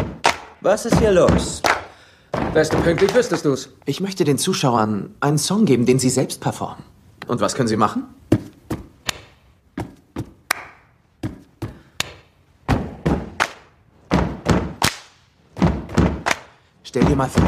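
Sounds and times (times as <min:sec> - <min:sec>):
hand clapping: 0:00.0 - 0:00.6, 0:01.6 - 0:02.0, 0:02.8 - 0:03.4, 0:09.0 - 0:09.4, 0:10.4 - 0:10.9, 0:12.0 - 0:12.3, 0:13.3 - 0:13.8, 0:14.7 - 0:15.2, 0:16.2 - 0:16.6
rhythmic stomping: 0:00.0 - 0:03.5, 0:08.3 - 0:17.4
speech: 0:00.6 - 0:08.3, 0:17.1 - 0:17.4.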